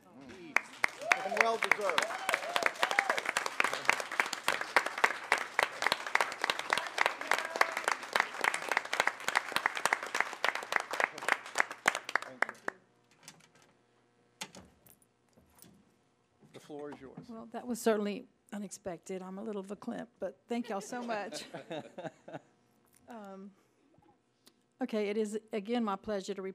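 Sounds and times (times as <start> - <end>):
standing round of applause: 0.0 - 12.8
speech: 1.5 - 2.2, 17.0 - 22.2, 24.9 - 26.5
laughter: 20.7 - 22.5.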